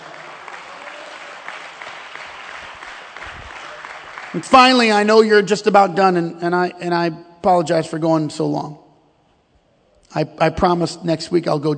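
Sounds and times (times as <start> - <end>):
audience clapping: 0.0 - 5.1
speech: 4.3 - 8.8, 10.1 - 11.7.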